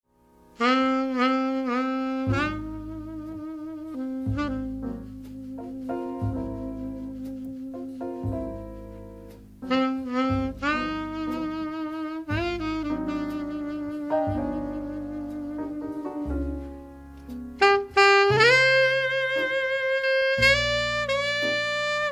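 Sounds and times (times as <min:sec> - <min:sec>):
saxophone: 0:00.6 - 0:22.1.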